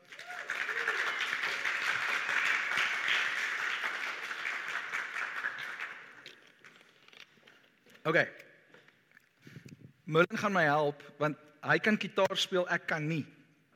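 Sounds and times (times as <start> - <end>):
audience hand clapping: 0.0 - 6.9
speech: 8.1 - 8.4, 10.1 - 13.4.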